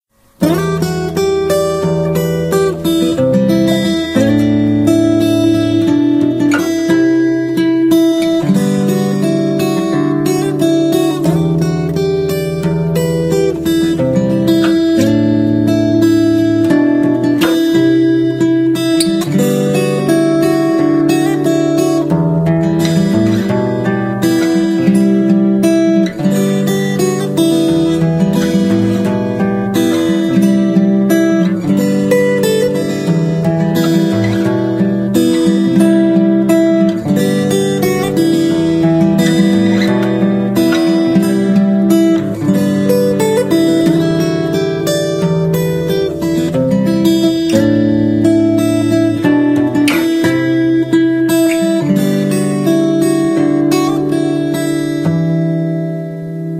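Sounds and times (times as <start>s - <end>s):
guitar: 0.0s - 56.5s.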